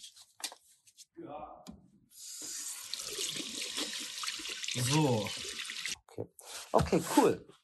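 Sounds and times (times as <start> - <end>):
tap water running into a sink while hands are washed with soap: 2.8 - 6.0
speech: 4.8 - 5.4, 6.9 - 7.5.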